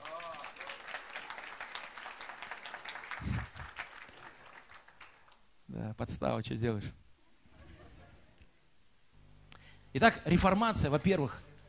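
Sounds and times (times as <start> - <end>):
crowd applauding: 0.0 - 5.4
speech: 5.9 - 7.0, 10.0 - 11.5.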